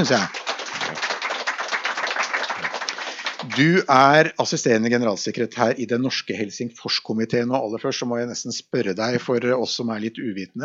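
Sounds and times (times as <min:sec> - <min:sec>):
speech: 0:00.0 - 0:00.4, 0:03.4 - 0:10.6
audience applause: 0:00.0 - 0:04.0.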